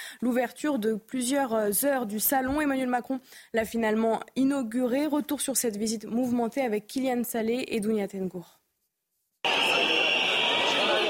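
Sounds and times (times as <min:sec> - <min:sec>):
speech: 0:00.1 - 0:08.6
sustained high whistle: 0:09.4 - 0:11.0
crowd of protesters booing: 0:09.5 - 0:11.0.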